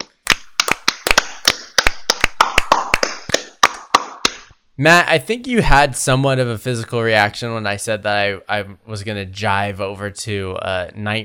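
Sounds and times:
hand clapping: 0.0s - 4.6s
speech: 4.8s - 11.2s.

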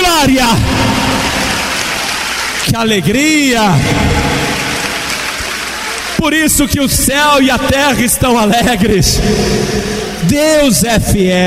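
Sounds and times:
audience applauding: 0.4s - 7.9s
speech: 2.7s - 4.6s, 6.2s - 11.4s.

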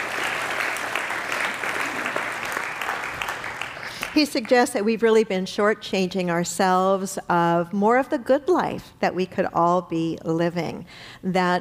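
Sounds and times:
crowd applause: 0.0s - 4.6s
speech: 4.2s - 11.5s.

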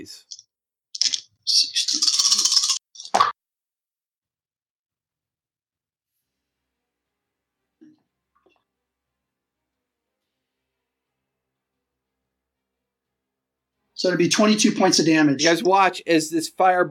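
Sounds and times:
speech: 0.0s - 0.4s, 1.5s - 1.7s, 14.0s - 16.8s
dice rolling: 1.0s - 3.2s.

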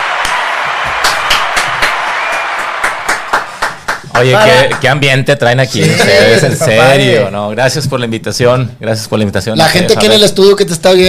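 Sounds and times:
studio audience applause: 0.0s - 5.0s
speech: 4.2s - 11.0s.

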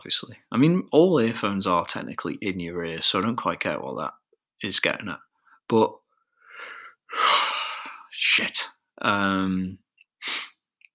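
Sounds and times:
speech: 0.0s - 6.0s, 6.6s - 7.5s, 8.2s - 10.4s
short cut-off yawn: 7.1s - 8.1s.

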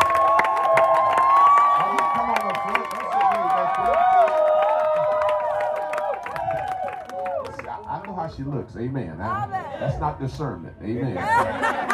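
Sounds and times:
audience clapping: 0.0s - 8.3s
speech: 8.6s - 11.9s
laughter: 11.2s - 11.9s.

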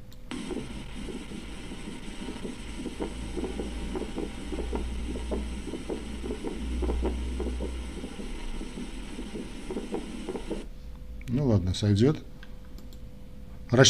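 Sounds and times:
recorded heartbeat with pulmonary ejection click: 0.3s - 10.7s
constant low hum: 0.3s - 11.2s
speech: 11.7s - 12.3s.

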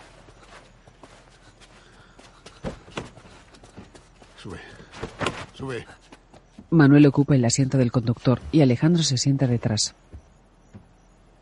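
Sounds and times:
man walking with effort toward a Mercedes: 0.0s - 6.8s
speech: 4.4s - 6.0s, 6.7s - 10.0s.

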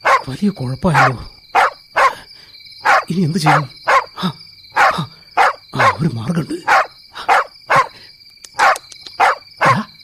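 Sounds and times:
puppy barking: 0.0s - 0.3s, 0.9s - 2.2s, 2.8s - 4.2s, 4.8s - 6.0s, 6.6s - 8.0s, 8.6s - 9.9s
speech: 0.3s - 1.3s, 3.1s - 4.4s, 5.8s - 6.7s.

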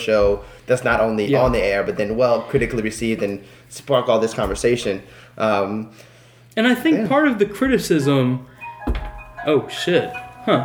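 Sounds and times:
speech: 0.0s - 10.6s
phone alarm going off: 8.6s - 10.6s.

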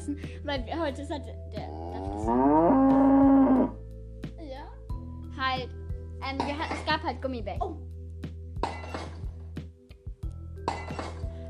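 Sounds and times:
speech: 0.1s - 3.1s, 5.5s - 7.9s
glass clinking and knocking: 10.6s - 11.3s.

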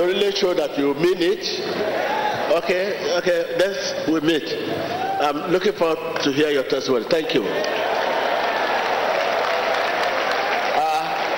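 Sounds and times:
speech: 0.0s - 7.8s
audience clapping: 7.5s - 11.3s.

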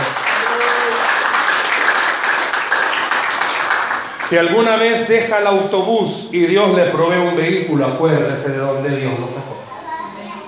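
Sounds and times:
large crowd applause: 0.0s - 4.4s
speech: 4.3s - 9.8s
faint murmur of voices: 9.4s - 10.4s.

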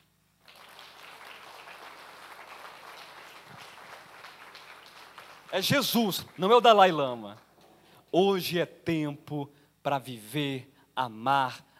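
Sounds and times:
audience applause: 0.4s - 7.0s
speech: 5.5s - 7.4s, 8.1s - 11.7s.

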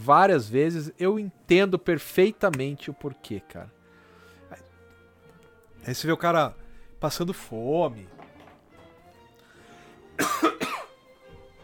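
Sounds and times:
speech: 0.0s - 3.8s, 5.8s - 8.2s
rough coughs: 10.2s - 11.0s.

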